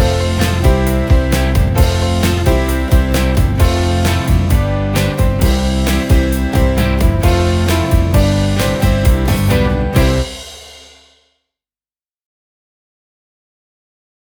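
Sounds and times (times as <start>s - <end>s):
instrumental music: 0.0s - 11.2s.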